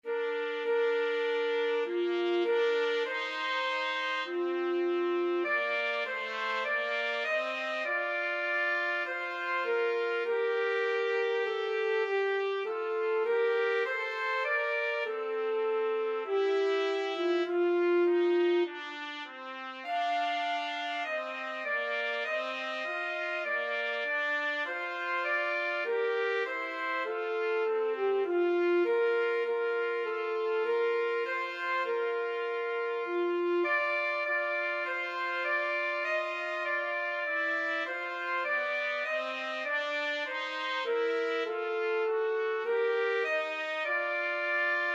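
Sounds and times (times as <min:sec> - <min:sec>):
saxophone: 0:00.0 - 0:44.9
trumpet: 0:00.0 - 0:44.9.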